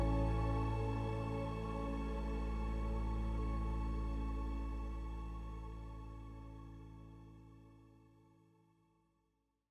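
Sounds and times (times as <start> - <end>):
sad piano music: 0.0 - 4.7.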